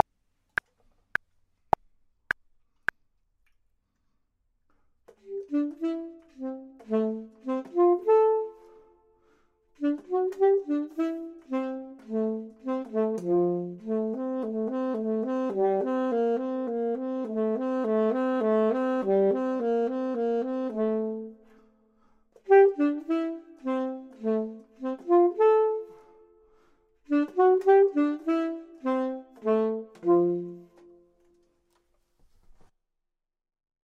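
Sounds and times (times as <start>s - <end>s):
clarinet: 5.1s - 31.6s
saxophone: 5.1s - 31.6s.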